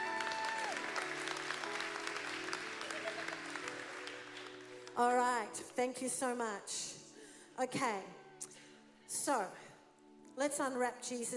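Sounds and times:
audience clapping: 0:00.0 - 0:05.0
speech: 0:05.0 - 0:07.0, 0:07.6 - 0:08.2, 0:09.1 - 0:09.7, 0:10.4 - 0:11.3.

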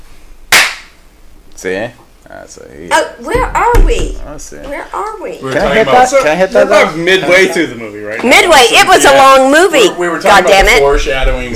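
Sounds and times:
hands slapping together: 0:00.5 - 0:01.0
speech: 0:01.6 - 0:11.5.

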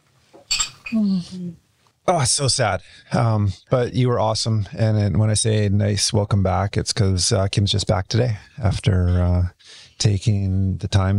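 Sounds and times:
glasses clinking in a toast: 0:00.4 - 0:01.2
speech: 0:00.9 - 0:11.1.

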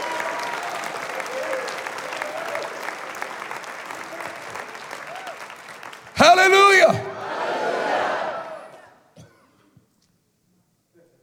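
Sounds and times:
audience clapping hands: 0:00.0 - 0:07.5.

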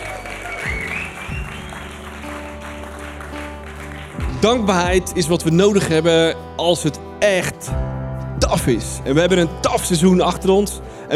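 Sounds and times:
audience applause: 0:00.0 - 0:04.7
speech: 0:04.4 - 0:07.8, 0:08.4 - 0:11.1.

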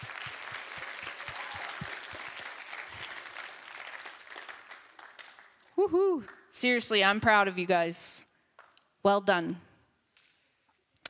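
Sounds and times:
audience applause: 0:00.0 - 0:06.4
speech: 0:05.8 - 0:08.3, 0:09.0 - 0:09.7.

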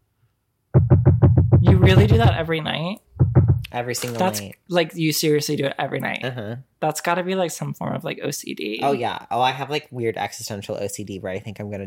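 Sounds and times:
knocking on a wooden bed: 0:00.8 - 0:02.4, 0:03.2 - 0:03.7
speech: 0:01.9 - 0:03.0, 0:03.7 - 0:11.8.

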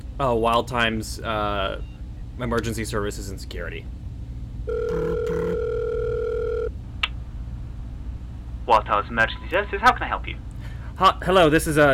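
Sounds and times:
speech: 0:00.2 - 0:04.0, 0:04.7 - 0:05.5, 0:08.7 - 0:11.9
telephone dial tone: 0:04.7 - 0:06.7.

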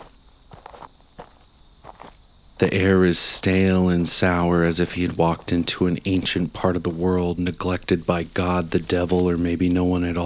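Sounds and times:
footsteps on dusty ground: 0:00.0 - 0:02.7, 0:04.0 - 0:10.2
high-pitched hiss: 0:00.0 - 0:10.2
speech: 0:02.6 - 0:10.2.

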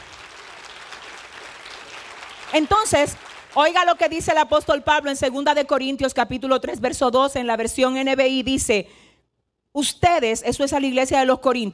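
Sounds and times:
audience applause: 0:00.0 - 0:04.0
speech: 0:02.5 - 0:09.1, 0:09.8 - 0:11.7.

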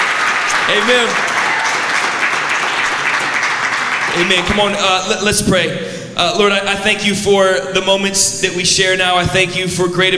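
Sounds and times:
people clapping hands: 0:00.0 - 0:05.2
speech: 0:00.7 - 0:01.3, 0:04.2 - 0:10.1.

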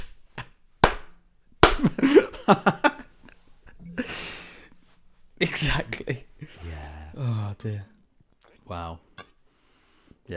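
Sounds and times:
slow hand clapping: 0:00.0 - 0:02.1
speech: 0:01.8 - 0:02.9, 0:05.4 - 0:06.3, 0:07.2 - 0:08.0, 0:08.7 - 0:09.1.

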